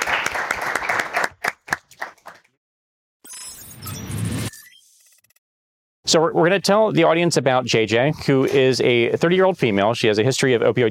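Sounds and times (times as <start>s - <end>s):
applause: 0.0s - 2.6s
speech: 6.1s - 10.8s.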